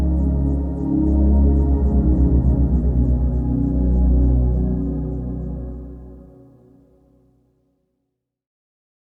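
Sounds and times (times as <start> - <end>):
dreamy synth pad: 0.0 - 7.1.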